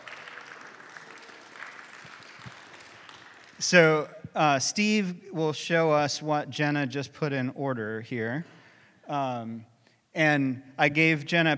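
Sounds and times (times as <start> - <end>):
audience round of applause: 0.0 - 4.0
speech: 3.6 - 11.5.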